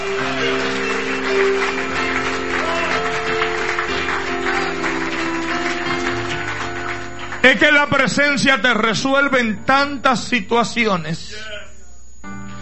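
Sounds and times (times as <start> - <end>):
loud applause from a large audience: 0.0 - 8.2
held keyboard chords: 0.0 - 10.8
speech: 7.5 - 11.7.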